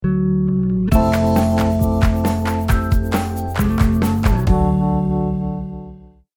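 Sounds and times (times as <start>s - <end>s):
videocast intro jingle: 0.9s - 5.8s.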